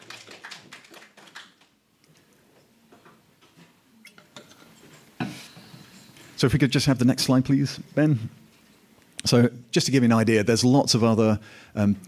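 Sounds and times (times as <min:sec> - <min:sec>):
applause: 0:00.0 - 0:01.8
speech: 0:06.4 - 0:08.4, 0:09.3 - 0:12.0.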